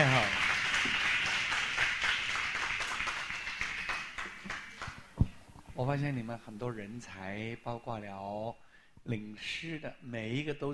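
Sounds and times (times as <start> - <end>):
audience applause: 0.0 - 5.1
speech: 5.8 - 10.7.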